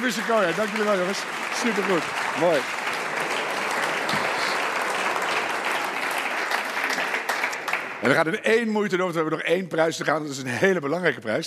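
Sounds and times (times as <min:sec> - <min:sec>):
speech: 0:00.0 - 0:02.9, 0:08.0 - 0:11.4
audience applause: 0:00.0 - 0:08.4.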